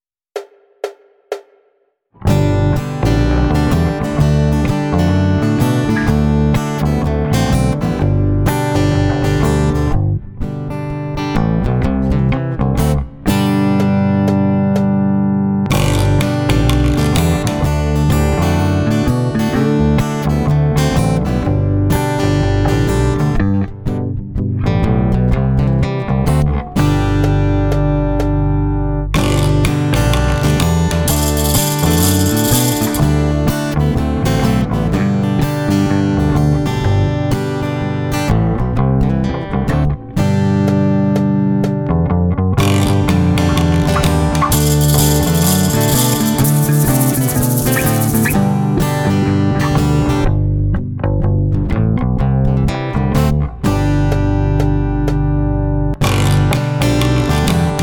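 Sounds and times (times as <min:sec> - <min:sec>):
instrumental music: 0:02.2 - 0:57.8.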